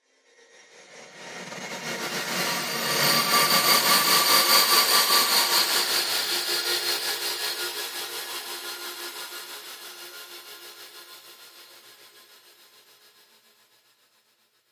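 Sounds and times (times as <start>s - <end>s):
horror synth pad: 0.6s - 7.0s.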